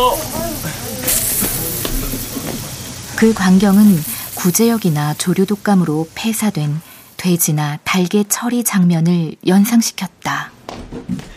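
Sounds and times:
disinfectant being sprayed: 0:00.0 - 0:07.8
speech: 0:03.2 - 0:10.5.

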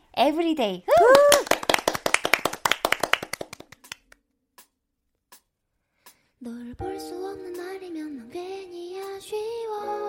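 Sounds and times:
speech: 0:00.2 - 0:01.5, 0:06.4 - 0:09.9
audience clapping: 0:01.0 - 0:04.2.

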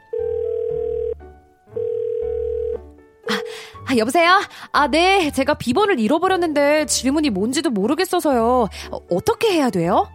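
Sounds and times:
phone line ringback tone: 0:00.0 - 0:03.6
speech: 0:03.9 - 0:10.1.

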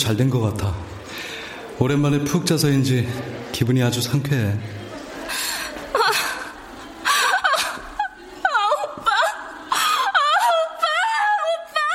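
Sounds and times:
speech: 0:00.0 - 0:04.8
laughter: 0:04.7 - 0:11.9
person crying with whimpering wails: 0:07.2 - 0:11.9.

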